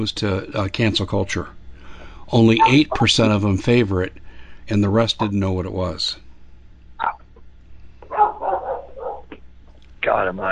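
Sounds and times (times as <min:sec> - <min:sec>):
speech: 0:00.0 - 0:01.6, 0:02.3 - 0:06.2, 0:10.1 - 0:10.5
dogs barking: 0:08.0 - 0:09.4.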